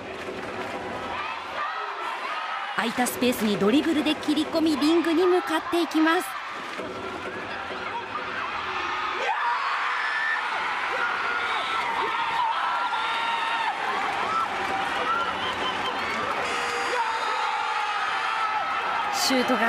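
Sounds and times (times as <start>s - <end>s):
arena crowd cheering at basketball game: 0.0s - 19.6s
speech: 2.8s - 7.0s
game-winning buzzer: 16.4s - 17.0s.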